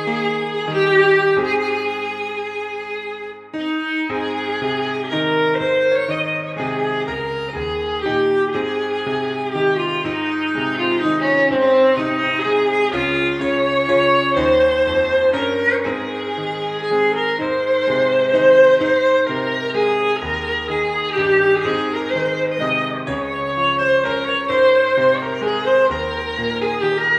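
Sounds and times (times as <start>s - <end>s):
violin playing a hymn: 0.0s - 27.1s.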